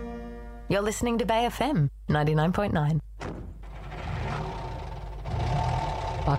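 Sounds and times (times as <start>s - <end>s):
speech: 0.7s - 3.5s
car engine driving sound effect on a radio show: 3.2s - 6.3s.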